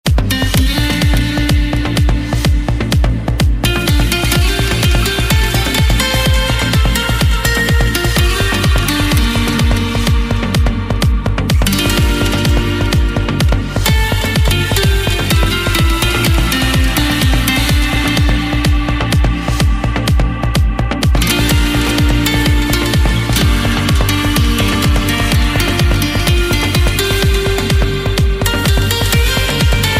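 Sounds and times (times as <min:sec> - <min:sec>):
synthesized guitar: 0:00.0 - 0:29.9.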